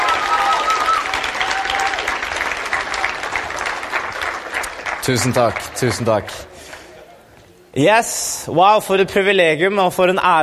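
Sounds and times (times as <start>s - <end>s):
audience applause: 0.0s - 7.0s
speech: 5.0s - 6.6s, 7.8s - 10.4s.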